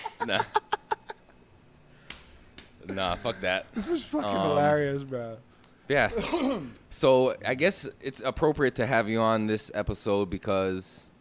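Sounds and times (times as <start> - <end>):
rhythmic laughter: 0.0 - 1.4
speech: 0.2 - 0.6, 2.9 - 11.1.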